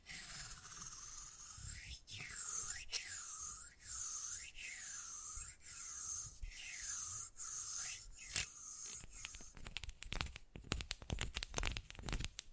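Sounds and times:
rhythmic swishing: 0.0 - 9.5
crinkly tapping and clicking: 9.5 - 12.5.

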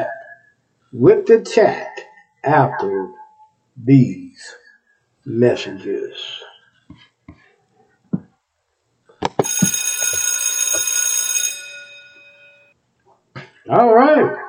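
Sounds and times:
speech: 0.9 - 3.2, 3.8 - 4.6, 5.2 - 7.0, 13.7 - 14.4
bell ringing: 9.4 - 12.8.

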